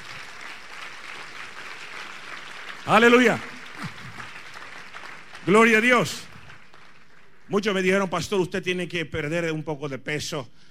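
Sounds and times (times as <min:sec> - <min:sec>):
applause: 0:00.0 - 0:08.4
speech: 0:02.9 - 0:03.9, 0:05.5 - 0:06.3, 0:07.5 - 0:10.6.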